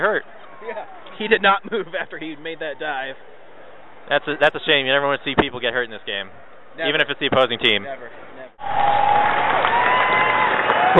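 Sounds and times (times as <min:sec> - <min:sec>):
speech: 0:00.0 - 0:03.4, 0:04.1 - 0:10.0
stadium crowd applauding: 0:08.6 - 0:10.9.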